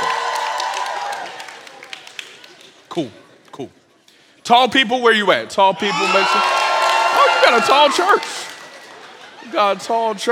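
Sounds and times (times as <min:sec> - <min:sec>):
audience cheering and clapping: 0:00.0 - 0:02.7, 0:05.8 - 0:10.2
speech: 0:03.0 - 0:03.8, 0:04.5 - 0:06.6, 0:07.2 - 0:08.4, 0:09.4 - 0:10.3.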